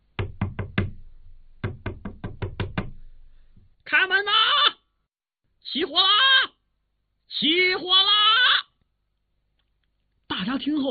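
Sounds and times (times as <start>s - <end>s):
banging knocks on a wooden door: 0.2s - 3.1s
person shouting: 3.9s - 4.8s, 5.7s - 6.6s, 7.4s - 8.7s
speech: 10.6s - 10.8s.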